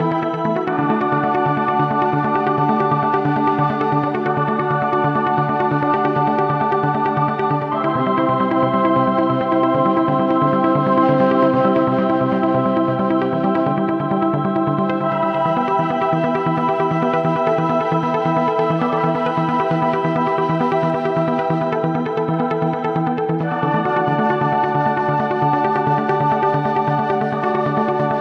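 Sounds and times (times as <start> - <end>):
Mellotron boys choir and flute: 0.0 - 28.1.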